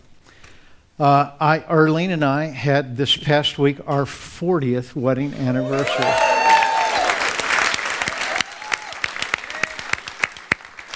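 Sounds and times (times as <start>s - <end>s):
speech: 1.0s - 6.3s
audience applause: 5.6s - 10.9s.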